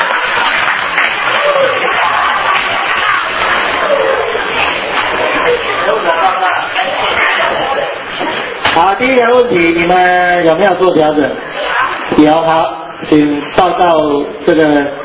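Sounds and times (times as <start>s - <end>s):
audience clapping hands: 0.0s - 7.5s
speech: 8.8s - 15.0s.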